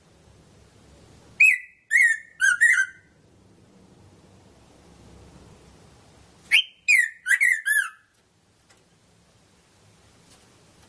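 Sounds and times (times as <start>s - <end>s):
red-throated parrotfinch Erythrura psittacea calling: 1.4s - 3.2s, 6.5s - 8.1s.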